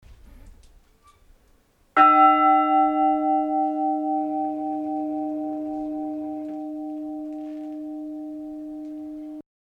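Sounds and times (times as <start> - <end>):
bell ringing: 2.0 - 9.4.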